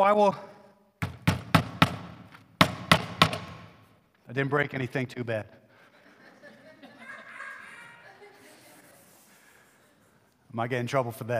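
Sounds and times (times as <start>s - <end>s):
speech: 0.0s - 0.5s, 4.3s - 5.6s, 10.6s - 11.3s
nailing papers to an interior house door: 1.0s - 3.8s
laughter: 5.7s - 10.3s.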